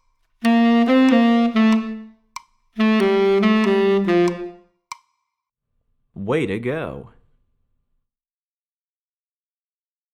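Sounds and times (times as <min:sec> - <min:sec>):
tenor saxophone: 0:00.4 - 0:02.2, 0:02.8 - 0:04.6.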